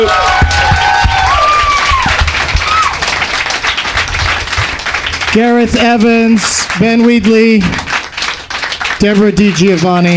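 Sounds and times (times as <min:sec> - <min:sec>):
high whistles and cheers: 0:00.0 - 0:03.0
audience applause: 0:00.0 - 0:10.1
speech: 0:05.3 - 0:07.8, 0:09.0 - 0:10.1.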